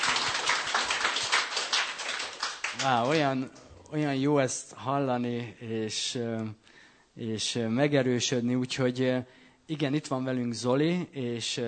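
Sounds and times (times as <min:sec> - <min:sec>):
audience clapping: 0:00.0 - 0:03.6
speech: 0:02.8 - 0:06.6, 0:07.2 - 0:11.6.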